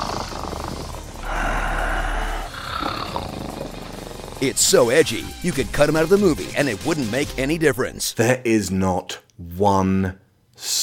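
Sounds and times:
big cat roaring and growling: 0.0 - 4.5
speech: 4.4 - 10.8.

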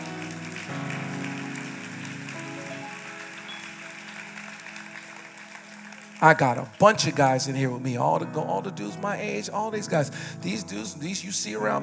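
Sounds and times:
audience clapping: 0.0 - 8.1
speech: 6.2 - 11.8.

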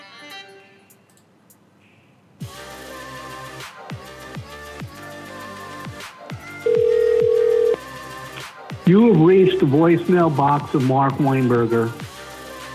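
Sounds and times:
telephone ringback tone on an outgoing call: 6.7 - 7.8
speech: 8.9 - 12.0.

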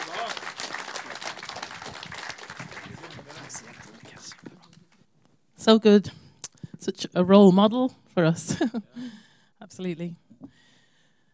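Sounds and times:
audience applause: 0.0 - 4.8
speech: 5.6 - 6.2, 6.8 - 10.2.

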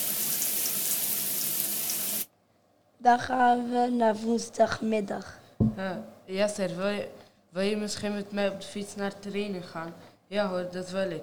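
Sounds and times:
shower water running: 0.0 - 2.3
speech: 3.0 - 11.2.

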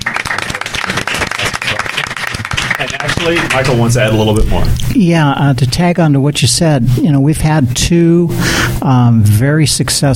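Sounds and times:
audience round of applause: 0.0 - 4.4
speech: 3.2 - 10.1.

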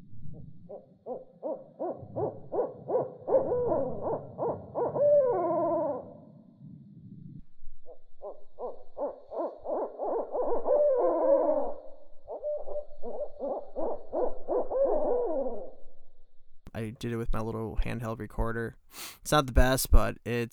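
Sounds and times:
owls hooting to each other: 0.7 - 6.3, 8.2 - 15.8
speech: 17.3 - 20.5.

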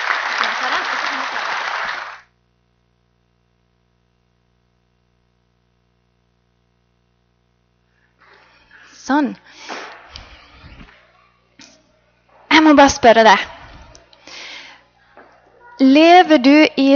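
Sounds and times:
audience applause: 0.0 - 2.3
speech: 9.1 - 9.7, 12.7 - 13.6, 15.8 - 16.9.

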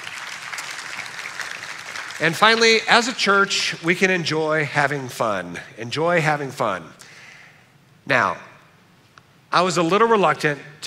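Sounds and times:
audience applause: 0.0 - 2.9
speech: 2.2 - 7.0, 8.0 - 8.5, 9.5 - 10.8.

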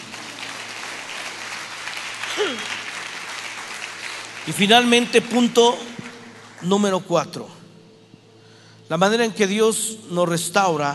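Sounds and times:
audience applause: 0.0 - 7.0
speech: 2.4 - 2.8, 4.4 - 5.9, 6.6 - 7.6, 8.9 - 10.9.

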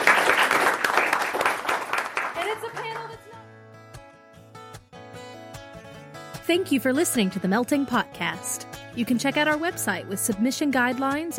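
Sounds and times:
audience clapping: 0.0 - 3.4
speech: 6.5 - 11.3.

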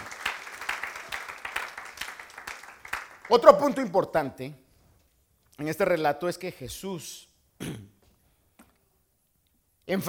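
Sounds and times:
audience rhythmic applause: 0.0 - 4.2
speech: 3.3 - 4.6, 5.6 - 7.9, 9.9 - 10.0.

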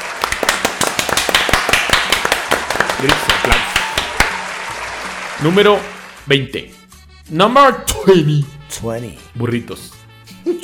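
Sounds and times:
group clapping: 0.0 - 6.7
speech: 3.0 - 3.7, 5.4 - 10.0.

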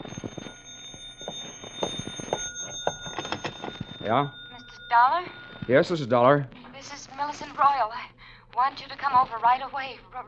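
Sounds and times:
telephone ringing: 0.0 - 7.9
speech: 4.1 - 10.2.

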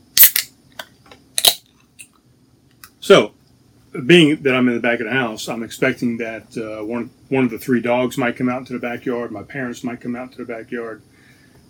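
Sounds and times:
beer being opened: 0.1 - 0.5, 1.4 - 1.6
speech: 3.1 - 11.1.

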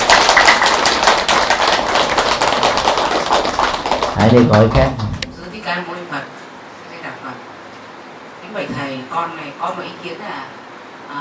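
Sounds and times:
audience applause: 0.0 - 5.2
speech: 4.2 - 5.1, 8.7 - 11.1.

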